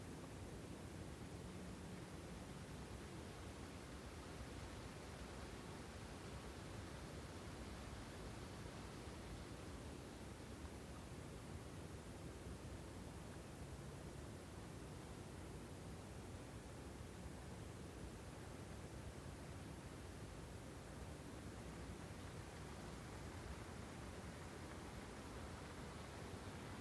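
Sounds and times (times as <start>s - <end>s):
light breeze among trees: 0.0s - 26.7s.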